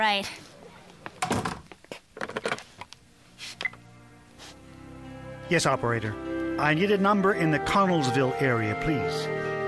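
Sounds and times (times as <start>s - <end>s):
speech: 0.0s - 0.5s, 5.5s - 9.5s
door being closed: 1.2s - 1.7s.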